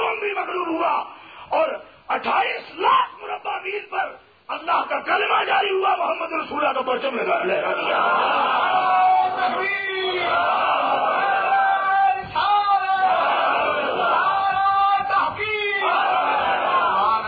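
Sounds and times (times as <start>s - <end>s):
speech: 0.5s - 11.1s
large crowd chanting a religious slogan at a Muslim gathering: 7.5s - 17.2s.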